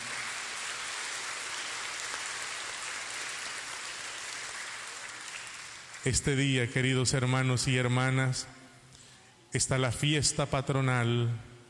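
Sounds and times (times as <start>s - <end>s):
loud applause: 0.0s - 6.2s
speech: 6.0s - 8.6s, 9.5s - 11.5s.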